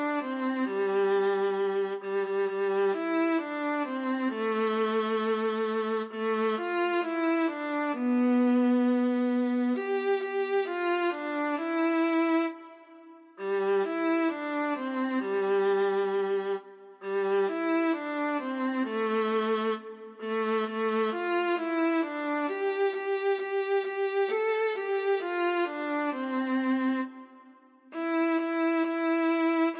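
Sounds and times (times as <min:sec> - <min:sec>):
solo Christmas song: 0:00.0 - 0:29.7.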